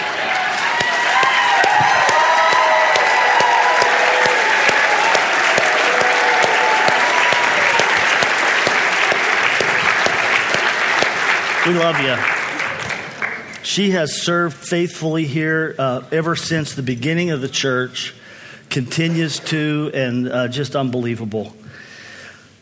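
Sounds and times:
audience applauding and cheering: 0.0 - 13.6
speech: 11.7 - 12.3, 13.7 - 18.2, 18.8 - 21.6.

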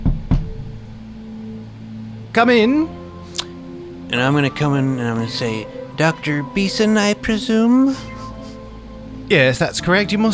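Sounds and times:
firm knocking on an office door: 0.0 - 0.8
speech: 2.3 - 3.0, 4.1 - 8.1, 9.3 - 10.3.

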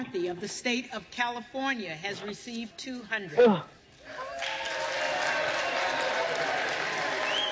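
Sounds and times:
speech: 0.0 - 4.6
crowd cheering: 4.0 - 7.4.

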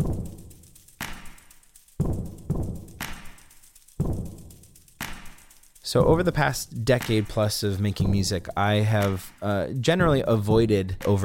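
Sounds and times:
percussion played on mops, brooms, brushes and cleaning supplies: 0.0 - 11.2
speech: 5.9 - 11.2.

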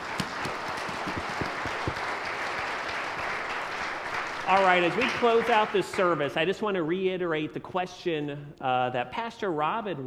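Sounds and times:
audience applause: 0.0 - 6.2
speech: 4.5 - 10.0.

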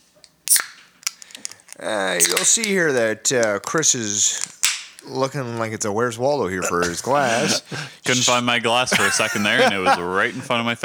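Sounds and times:
small metallic clicks: 0.2 - 5.1
beer can cracking open with fizzing hiss: 0.2 - 5.7
speech: 1.8 - 10.8
laughter: 6.6 - 10.8.

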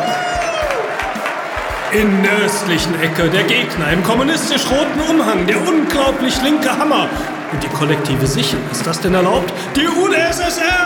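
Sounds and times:
whistles and shouts: 0.0 - 2.4
large crowd applauding: 0.0 - 10.8
speech: 1.9 - 10.8.

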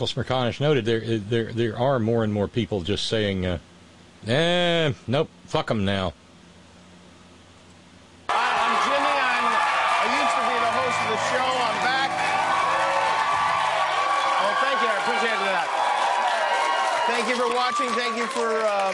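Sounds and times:
speech: 0.0 - 6.2, 17.2 - 18.9
audience clapping as a speaker comes on stage: 8.3 - 18.9
whoops and shouting voices: 8.3 - 18.9.

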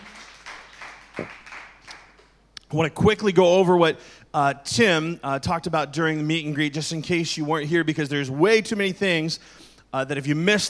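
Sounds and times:
audience applause: 0.0 - 2.2
speech: 1.2 - 1.4, 2.7 - 10.6.

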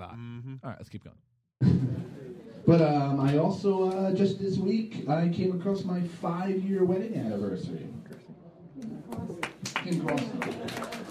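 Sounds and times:
speech: 0.2 - 8.0, 9.9 - 10.9
hand clapping: 8.8 - 11.0.

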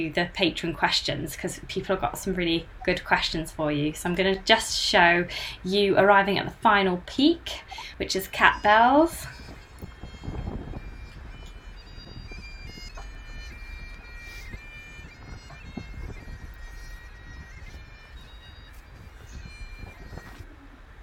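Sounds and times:
speech: 0.0 - 9.4
bagpipes playing on windy hilltop: 7.8 - 20.5.

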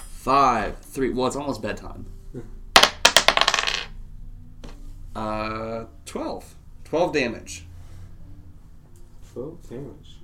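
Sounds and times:
speech: 0.2 - 2.6, 5.2 - 7.7, 9.4 - 10.2
dice clattering across a hard surface: 2.8 - 3.9.

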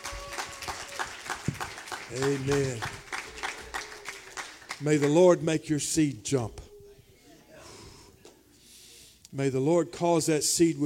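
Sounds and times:
audience clapping hands: 0.0 - 5.5
speech: 2.1 - 3.0, 4.8 - 6.6, 9.4 - 10.8.

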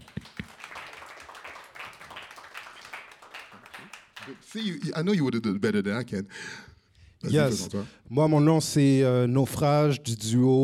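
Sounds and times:
crowd applauding: 0.0 - 4.6
speech: 4.3 - 10.6.

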